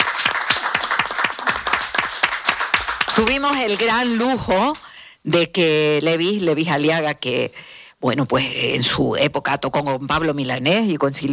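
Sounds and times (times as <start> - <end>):
audience applause: 0.0 - 4.8
speech: 3.2 - 11.3.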